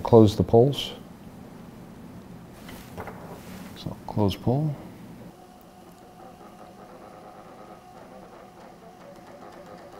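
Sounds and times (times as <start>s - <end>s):
speech: 0.1s - 1.0s, 4.2s - 4.8s
Dominion voting machine printing results: 5.3s - 9.9s.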